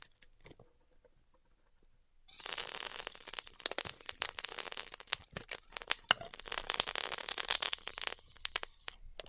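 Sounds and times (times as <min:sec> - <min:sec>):
styrofoam cut with heat, crackling hiss: 0:02.3 - 0:08.9.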